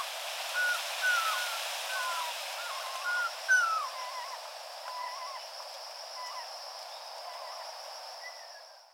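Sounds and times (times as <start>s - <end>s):
ruddy kingfisher calling on Miyakojima: 0.6s - 5.4s.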